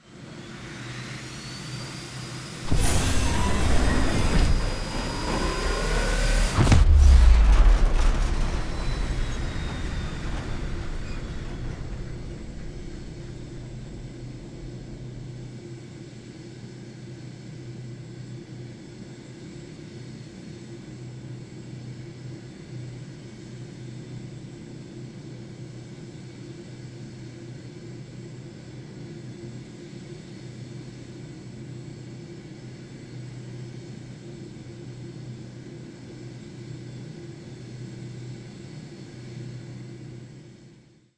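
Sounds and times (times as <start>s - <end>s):
evacuation warp fly-out effect: 2.6s - 15.5s.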